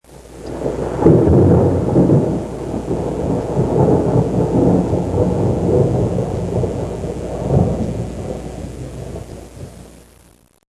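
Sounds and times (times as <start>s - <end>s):
thunder: 0.4s - 9.9s.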